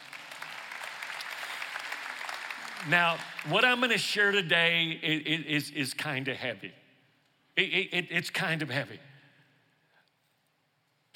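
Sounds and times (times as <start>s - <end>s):
audience clapping: 0.0s - 4.4s
speech: 2.8s - 6.8s, 7.6s - 9.1s.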